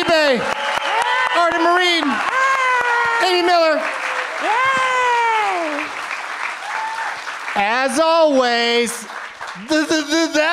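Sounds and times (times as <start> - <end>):
person cheering: 0.0 - 6.0, 6.6 - 7.2, 9.6 - 10.5
audience applause: 0.0 - 10.5
speech: 3.3 - 5.0, 7.6 - 10.5.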